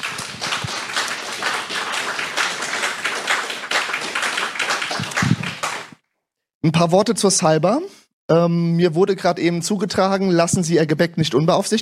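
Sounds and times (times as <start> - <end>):
audience applause: 0.0 - 6.0
speech: 6.6 - 11.7.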